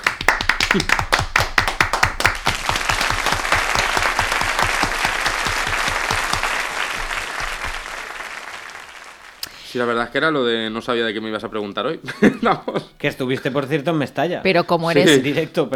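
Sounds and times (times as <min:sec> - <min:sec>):
audience applause: 0:00.0 - 0:09.5
speech: 0:00.7 - 0:01.1, 0:09.8 - 0:15.7.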